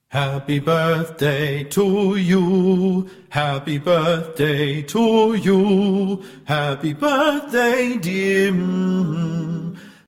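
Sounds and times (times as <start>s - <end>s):
fast birthday song: 0.0s - 10.0s.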